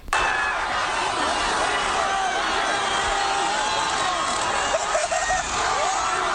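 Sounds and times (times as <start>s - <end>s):
crowd shouting and cheering in a Philadelphia street after a Super Bowl victory: 0.1s - 6.3s
laughter: 0.2s - 6.3s.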